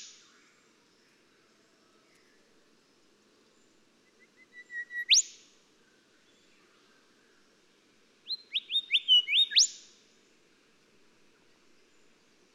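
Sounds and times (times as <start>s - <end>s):
golden whistler song: 4.4s - 5.3s, 8.5s - 9.7s.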